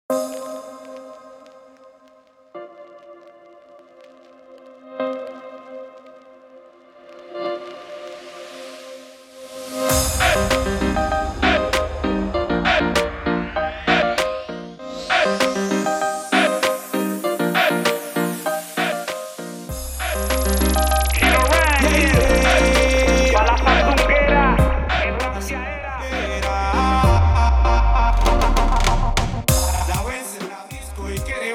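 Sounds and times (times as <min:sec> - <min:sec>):
show opening music at 98 bpm: 0:07.1 - 0:31.5.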